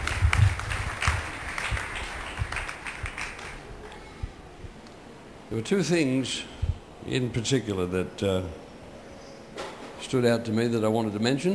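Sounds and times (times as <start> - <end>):
audience applause: 0.0 - 4.0
speech: 5.5 - 6.5, 7.1 - 8.6, 10.0 - 11.5.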